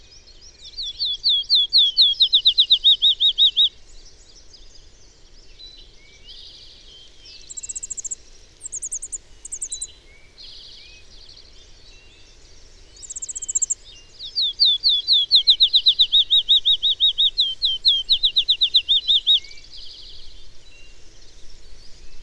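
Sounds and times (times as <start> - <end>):
bird singing fast slurred whistles: 0.8 - 3.7, 7.5 - 9.9, 13.0 - 19.6.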